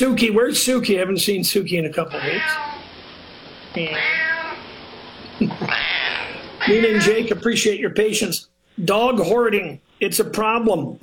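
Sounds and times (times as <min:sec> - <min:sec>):
speech: 0:00.0 - 0:02.8, 0:03.7 - 0:04.3, 0:06.6 - 0:11.0
cat meowing: 0:02.1 - 0:02.9, 0:03.8 - 0:04.8, 0:05.7 - 0:07.4.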